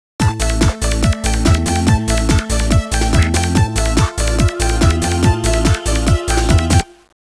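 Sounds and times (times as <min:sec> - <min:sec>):
groove music: 0:00.2 - 0:07.1.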